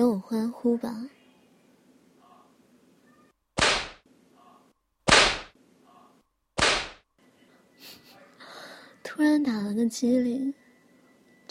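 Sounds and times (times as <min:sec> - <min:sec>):
speech: 0:00.1 - 0:01.2, 0:09.2 - 0:10.6
whip cracking: 0:03.6 - 0:04.0, 0:05.1 - 0:05.6, 0:06.6 - 0:07.0.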